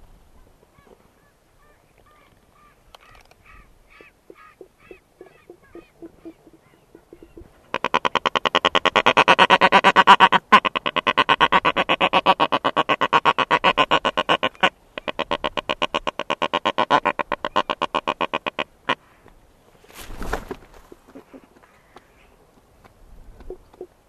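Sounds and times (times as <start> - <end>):
black-browed albatross rattling call of harsh pulses: 2.0 - 19.0.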